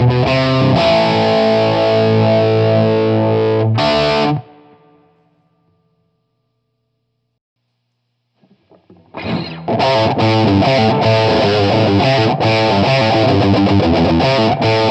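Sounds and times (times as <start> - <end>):
electric guitar with crunch distortion through an amplifier: 0.0 - 5.2, 8.3 - 14.8.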